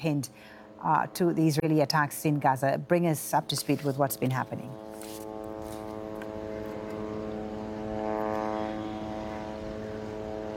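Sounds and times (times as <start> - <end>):
speech: 0.0 - 5.2
military drones buzzing overhead: 4.4 - 10.5.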